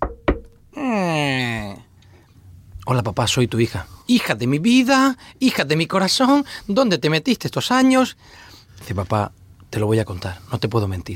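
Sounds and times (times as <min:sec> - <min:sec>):
knocking on a door in a small village in Chiapas: 0:00.0 - 0:00.6
speech: 0:02.9 - 0:11.1.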